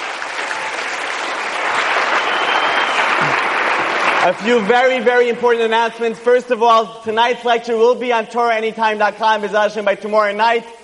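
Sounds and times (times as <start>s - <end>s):
audience applause: 0.0s - 5.1s
speech: 4.2s - 10.8s.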